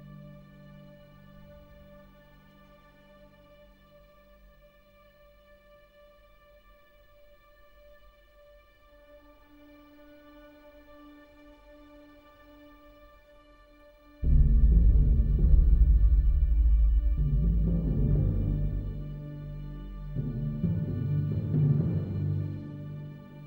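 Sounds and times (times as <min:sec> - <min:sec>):
timpani: 0:14.2 - 0:22.9.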